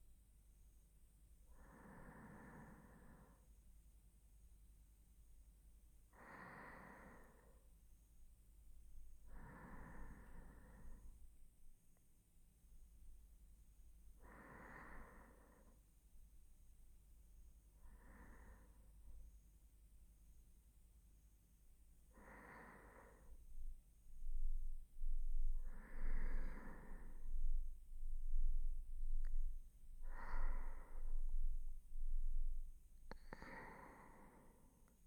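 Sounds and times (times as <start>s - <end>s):
person breathing in sleep on the right side: 1.5s - 3.5s, 6.1s - 7.7s, 9.2s - 11.3s, 14.2s - 15.9s, 17.8s - 19.2s, 22.1s - 35.0s.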